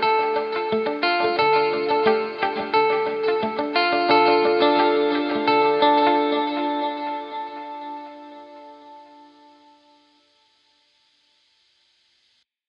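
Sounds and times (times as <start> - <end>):
Roland SDE 2000 dotted eighth delay effect: 0.0 - 10.0.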